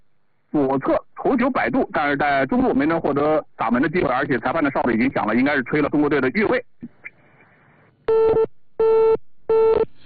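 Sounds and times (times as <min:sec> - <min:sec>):
speech: 0:00.5 - 0:07.0
telephone busy signal on failed call: 0:08.1 - 0:09.9.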